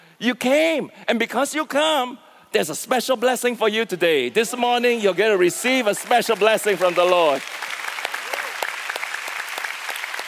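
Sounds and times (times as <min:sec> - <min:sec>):
speech: 0:00.2 - 0:07.7
audience applause: 0:05.6 - 0:10.2.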